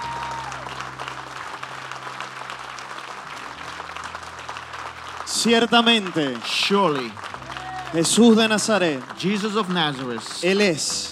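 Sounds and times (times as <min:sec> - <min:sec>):
applause: 0:00.0 - 0:11.1
speech: 0:05.4 - 0:07.2, 0:07.9 - 0:11.1.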